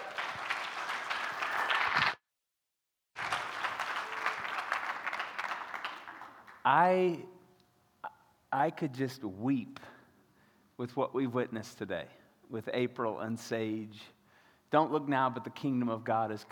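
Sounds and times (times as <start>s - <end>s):
audience applause welcoming a speaker: 0.0s - 2.2s, 3.2s - 6.6s
speech: 6.6s - 7.4s, 8.5s - 9.9s, 10.8s - 16.5s.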